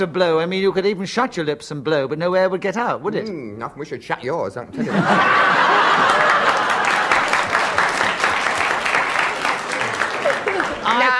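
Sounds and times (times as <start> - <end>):
speech: 0.0 - 6.3
scattered chuckles and laughter from the audience: 4.8 - 7.8, 9.4 - 11.0
audience clapping: 5.3 - 11.1.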